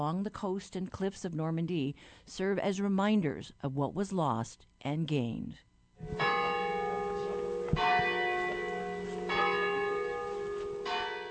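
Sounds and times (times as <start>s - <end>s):
speech: 0.0s - 6.4s
Ermenville Church Tower bells pealing: 6.0s - 11.3s.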